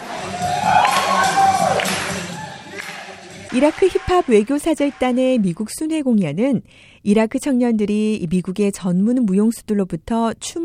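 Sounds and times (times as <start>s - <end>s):
audience applause and cheering: 0.0s - 5.4s
speech: 3.5s - 10.6s.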